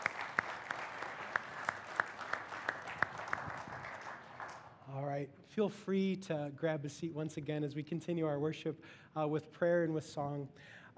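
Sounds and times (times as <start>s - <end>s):
church congregation applauding: 0.0s - 4.8s
speech: 5.2s - 10.9s.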